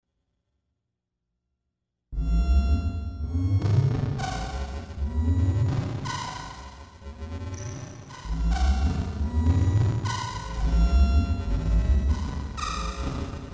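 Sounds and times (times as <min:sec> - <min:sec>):
red alert alarm: 0:02.2 - 0:06.6, 0:07.5 - 0:13.3.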